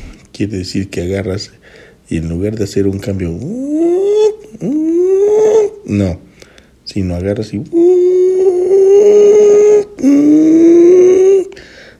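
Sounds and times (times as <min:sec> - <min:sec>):
speech: 0:00.4 - 0:04.0, 0:04.6 - 0:06.3, 0:06.9 - 0:08.1
voice imitating motorcycle engine over-revving: 0:03.3 - 0:06.2, 0:07.6 - 0:11.6.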